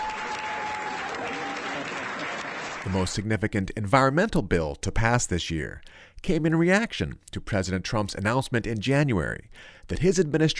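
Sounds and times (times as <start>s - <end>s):
applause at midnight adjournment of Maryland state legislative session: 0.0s - 3.1s
speech: 2.8s - 10.5s.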